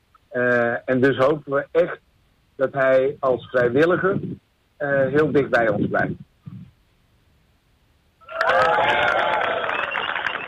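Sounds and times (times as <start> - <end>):
speech: 0.4 - 6.3
cheers and whoops: 8.2 - 10.4
loud sustained audience applause: 8.2 - 10.4.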